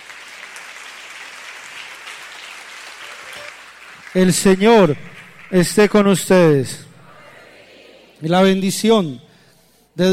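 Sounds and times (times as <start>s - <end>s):
audience applauding: 0.0s - 6.0s
speech: 4.1s - 6.9s, 8.2s - 9.3s, 10.0s - 10.1s.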